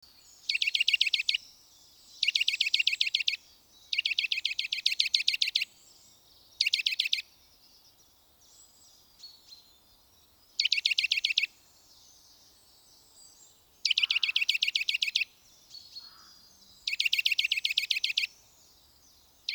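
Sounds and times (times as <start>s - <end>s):
Eurasian nuthatch calling with bright piping notes: 0.4s - 1.5s, 2.2s - 5.8s, 6.6s - 7.3s, 10.6s - 11.6s, 13.8s - 18.4s.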